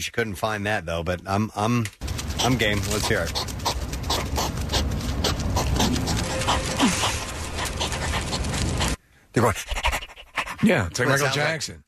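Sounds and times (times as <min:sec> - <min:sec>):
speech: 0:00.0 - 0:03.6, 0:09.4 - 0:09.9, 0:10.6 - 0:11.8
constant noisy background: 0:00.0 - 0:11.8
hedgehogs huffing and snorting while mating: 0:02.1 - 0:11.0.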